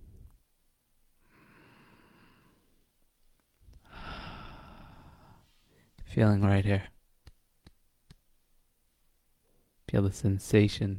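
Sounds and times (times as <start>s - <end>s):
slow deep breaths during a guided meditation: 1.2s - 2.9s, 3.7s - 6.0s
speech: 6.1s - 7.0s, 10.0s - 10.9s.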